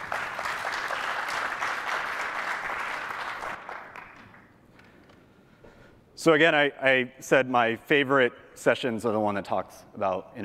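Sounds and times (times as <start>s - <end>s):
audience applause: 0.0s - 4.4s
speech: 6.2s - 10.4s.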